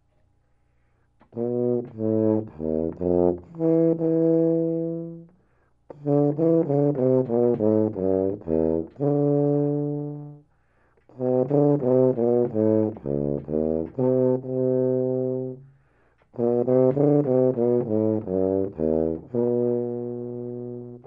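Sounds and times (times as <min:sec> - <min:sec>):
tuba: 0:00.8 - 0:21.0.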